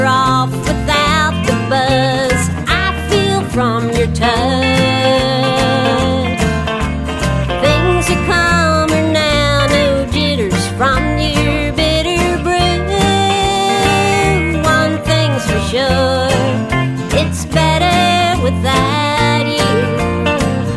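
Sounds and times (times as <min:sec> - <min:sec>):
country honky tonk guitar: 0:00.0 - 0:20.7.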